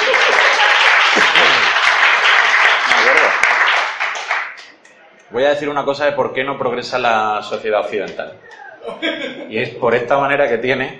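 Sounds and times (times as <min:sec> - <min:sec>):
crowd applause: 0:00.0 - 0:04.8
speech: 0:05.4 - 0:10.9.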